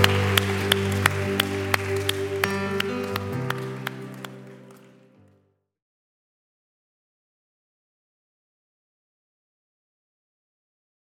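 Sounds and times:
audience applause: 0.0 - 5.3.

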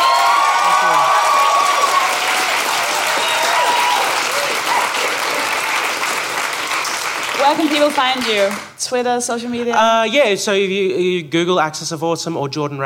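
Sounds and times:
big round of audience applause: 0.0 - 8.8
speech: 7.5 - 12.8.

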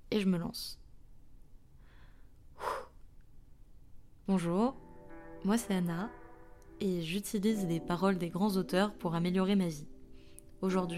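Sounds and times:
speech: 0.2 - 0.8, 4.3 - 4.8, 5.4 - 6.2, 6.8 - 9.9, 10.6 - 10.9
deep breath drawn in before speaking: 1.8 - 3.0, 10.1 - 10.5.

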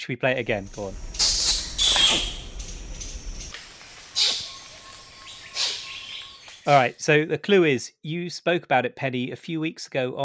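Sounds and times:
speech: 0.0 - 1.1, 6.6 - 10.2
soft hiss of forest background: 0.3 - 7.3
wild orangutans kiss squeaking: 1.0 - 4.6, 5.5 - 6.0.

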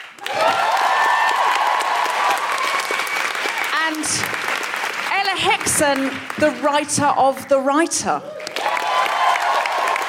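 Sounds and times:
crowd applause: 0.0 - 6.9, 8.3 - 10.0
crowd whooping and cheering: 0.2 - 3.7, 8.3 - 10.0
speech: 5.3 - 8.4.

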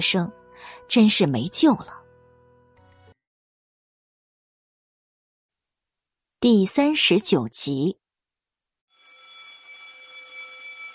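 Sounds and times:
speech: 0.0 - 2.0, 6.4 - 8.0
school bell ringing for end of class: 8.9 - 10.9.

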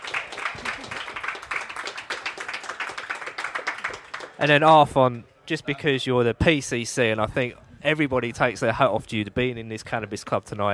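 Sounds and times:
round of applause: 0.0 - 4.6
speech: 4.4 - 10.7.

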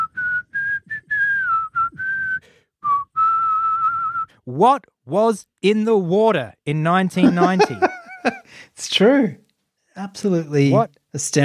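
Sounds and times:
person whistling a slow rock melody: 0.0 - 4.4
speech: 4.5 - 9.4, 10.0 - 11.4
laughter: 7.2 - 8.5.

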